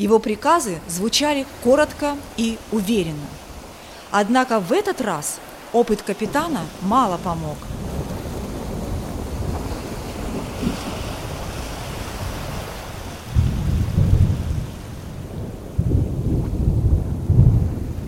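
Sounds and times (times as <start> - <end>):
speech: 0.0 - 3.4, 4.1 - 7.7
steady rain in a storm at sea: 0.0 - 18.0
surging waves at sea: 0.0 - 18.0
deep rumbling thunder: 7.6 - 18.0.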